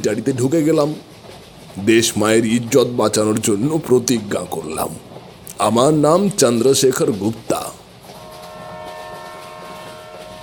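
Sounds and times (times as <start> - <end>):
speech: 0.0 - 1.2, 1.8 - 7.8
running train rumbling in the dark: 0.0 - 10.4
sustained high tonal whine: 8.0 - 10.4.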